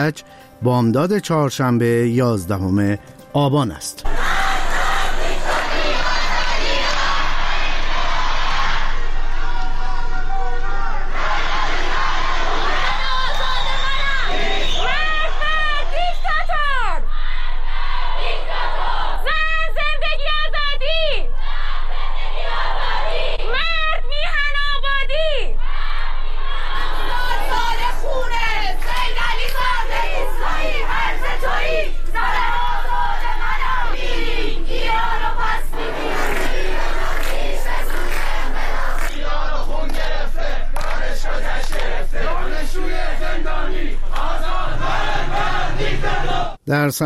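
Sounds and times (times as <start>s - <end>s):
speech: 0.0s - 4.1s
large protest crowd chanting and shouting in the street: 4.0s - 47.0s
whistles: 13.3s - 15.0s.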